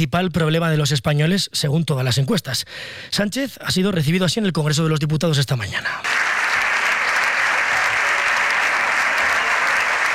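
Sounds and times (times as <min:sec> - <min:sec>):
speech: 0:00.0 - 0:06.4
applause from the governing party's benches in the Spanish Congress of Deputies: 0:06.0 - 0:10.1.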